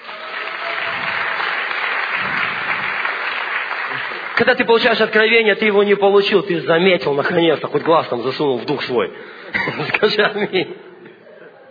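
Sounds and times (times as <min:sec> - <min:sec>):
crowd applause: 0:00.0 - 0:04.9
speech: 0:04.4 - 0:10.9
laughter: 0:09.5 - 0:11.6.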